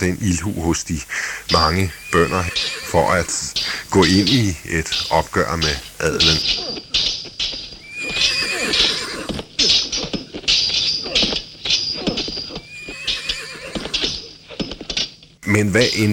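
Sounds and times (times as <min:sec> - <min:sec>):
speech: 0:00.0 - 0:07.6, 0:15.5 - 0:16.1
clatter of many hooves of approaching riders: 0:00.0 - 0:16.1
several horses whinnying: 0:01.9 - 0:04.2, 0:06.2 - 0:14.8.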